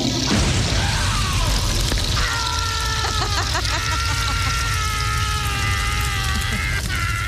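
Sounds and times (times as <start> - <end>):
toilet exploding into flames: 0.0 - 7.2
laughter: 2.3 - 7.2.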